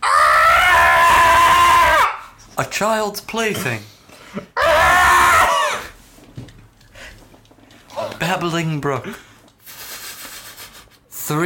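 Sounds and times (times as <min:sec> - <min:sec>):
person imitating a frightened ghost wail: 0:00.0 - 0:02.2, 0:04.6 - 0:05.9
speech: 0:02.6 - 0:04.7, 0:08.3 - 0:09.3, 0:11.3 - 0:11.4.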